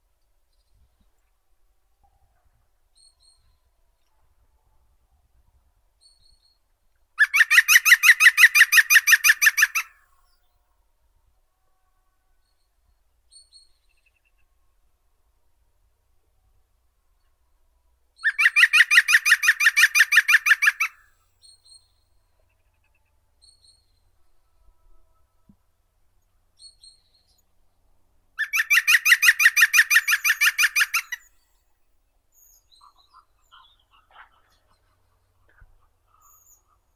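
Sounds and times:
green woodpecker Picus viridis: 0:07.2 - 0:09.9, 0:18.2 - 0:20.9, 0:28.4 - 0:31.3.

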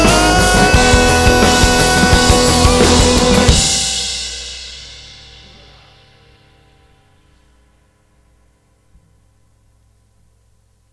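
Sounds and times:
live acoustic music: 0:00.0 - 0:04.2.

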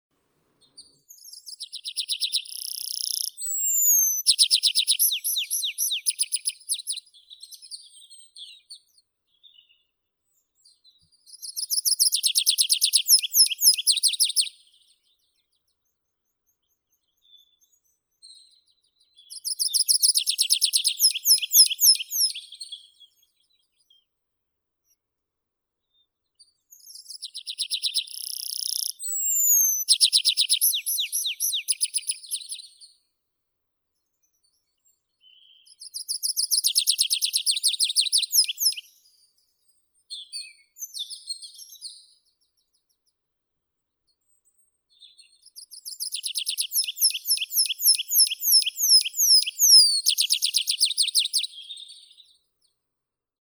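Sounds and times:
Anthus trivialis singing: 0:01.5 - 0:07.0, 0:11.5 - 0:14.5, 0:19.3 - 0:22.5, 0:27.3 - 0:32.6, 0:35.9 - 0:39.0, 0:45.6 - 0:51.8.

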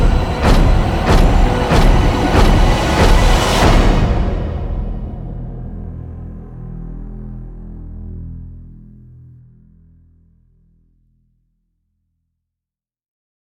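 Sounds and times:
drums: 0:00.0 - 0:06.2.

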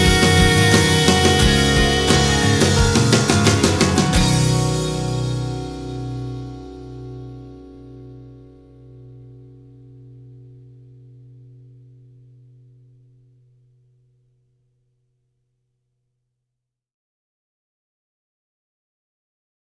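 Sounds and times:
acoustic music: 0:00.0 - 0:13.2.

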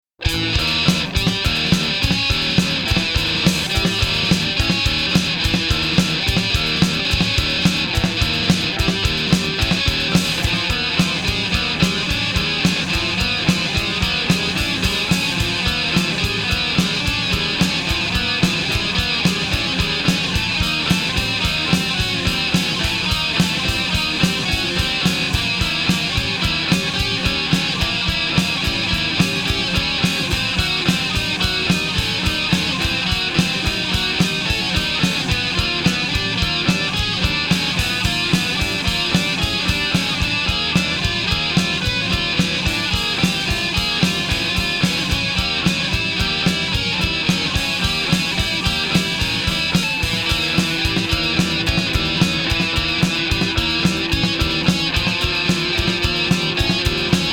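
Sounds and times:
instrumental music: 0:00.2 - 0:57.3.

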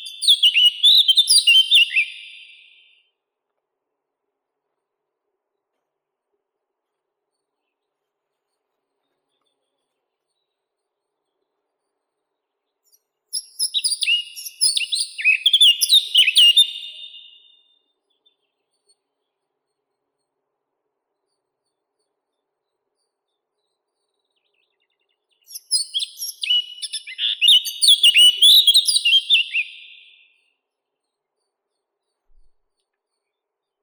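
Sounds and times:
Sylvia atricapilla blackcap singing: 0:00.0 - 0:02.8, 0:13.3 - 0:17.6, 0:25.4 - 0:30.2.

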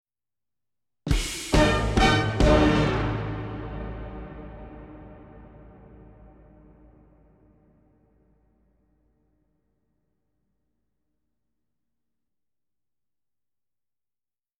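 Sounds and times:
big band sting: 0:01.1 - 0:07.3.

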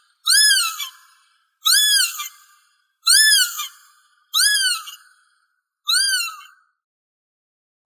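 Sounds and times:
northern lapwing Vanellus vanellus calling: 0:00.0 - 0:02.5, 0:03.1 - 0:03.8, 0:04.4 - 0:05.0, 0:05.9 - 0:06.4.

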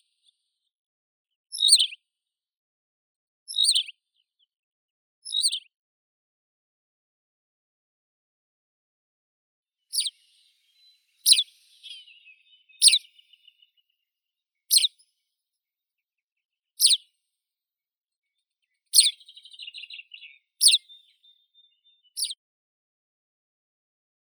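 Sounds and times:
tawny pipit Anthus campestris: 0:01.6 - 0:02.0, 0:09.9 - 0:10.4, 0:11.2 - 0:13.4, 0:14.7 - 0:14.9, 0:16.8 - 0:17.0, 0:19.0 - 0:21.0, 0:22.2 - 0:22.4.

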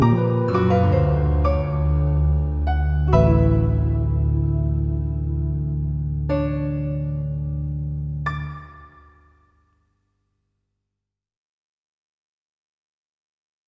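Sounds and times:
unprepared piano: 0:00.0 - 0:09.4.

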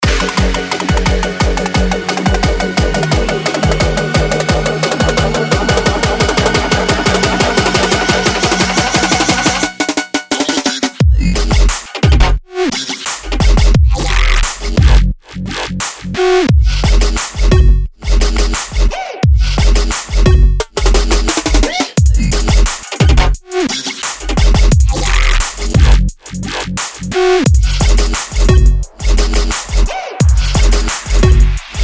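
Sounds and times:
trap remix: 0:00.0 - 0:15.0, 0:16.3 - 0:31.8.

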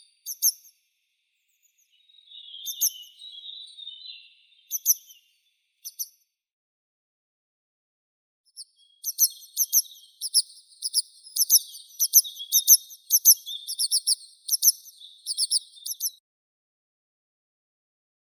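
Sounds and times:
grey wagtail Motacilla cinerea calling: 0:02.2 - 0:05.2, 0:09.1 - 0:16.1.

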